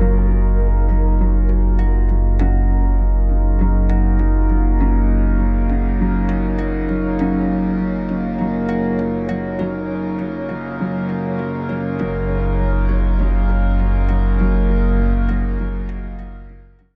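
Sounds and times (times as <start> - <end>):
deep relaxation 3D music: 0.0 - 16.9.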